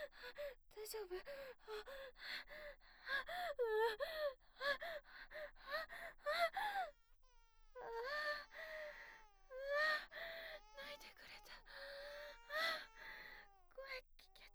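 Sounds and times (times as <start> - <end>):
speech: 0.1 - 6.2
baby crying: 6.3 - 14.4.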